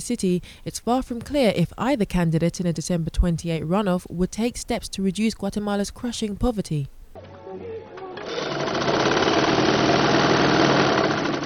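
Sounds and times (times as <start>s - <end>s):
speech: 0.0s - 7.7s
sewing machine running: 8.0s - 11.4s.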